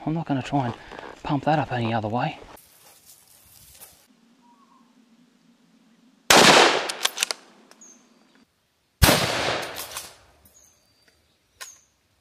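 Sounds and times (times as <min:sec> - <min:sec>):
speech: 0:00.1 - 0:02.4
gunshots: 0:06.3 - 0:07.3, 0:09.0 - 0:10.1.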